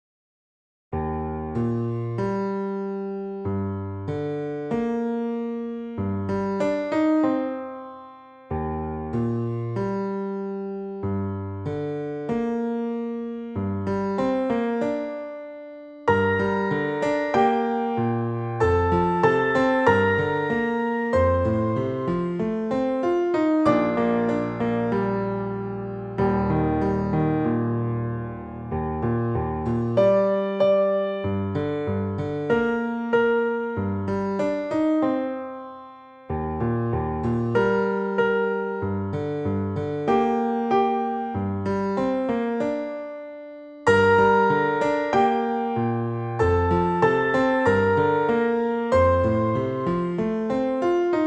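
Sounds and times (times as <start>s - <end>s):
piano duet in G minor: 1.0s - 51.2s.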